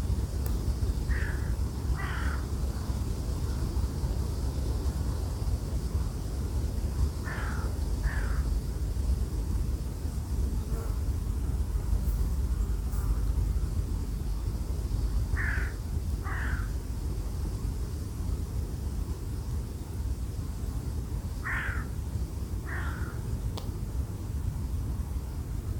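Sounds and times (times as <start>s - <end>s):
rumbling wind: 0.0s - 25.7s
bird cawing: 1.1s - 2.5s, 7.2s - 8.5s, 15.4s - 16.8s, 21.4s - 21.9s, 22.6s - 23.3s.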